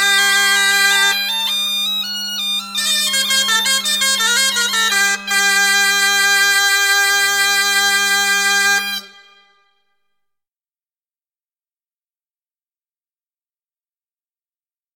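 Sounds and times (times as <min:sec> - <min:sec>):
biniou and bombarde playing a plinn dance tune: 0:00.0 - 0:09.8.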